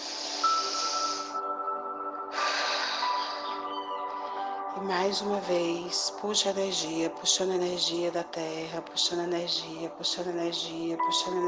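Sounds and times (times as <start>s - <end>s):
deep breath during a guided meditation: 0.0s - 3.7s
speech: 4.8s - 11.4s.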